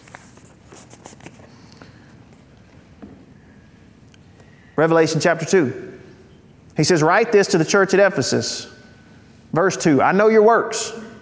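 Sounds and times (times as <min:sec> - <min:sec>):
thin pages of a Bible flipped toward Revelation: 0:00.0 - 0:02.5
steady low hiss: 0:00.0 - 0:11.2
speech: 0:04.8 - 0:06.0, 0:06.8 - 0:08.8, 0:09.5 - 0:11.1.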